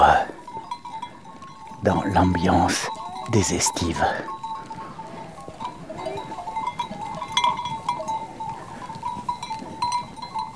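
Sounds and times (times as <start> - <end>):
flock of goats or sheep bleating: 0.0 - 0.6, 1.8 - 4.5
shuffling bell-like tinkling of flock: 0.0 - 10.5
speech: 1.8 - 4.4.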